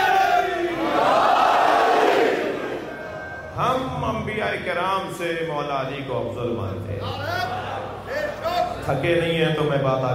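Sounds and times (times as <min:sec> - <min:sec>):
crowd at a Shia devotional gathering roaring a religious slogan: 0:00.0 - 0:03.0
speech: 0:04.4 - 0:07.6, 0:08.2 - 0:10.1.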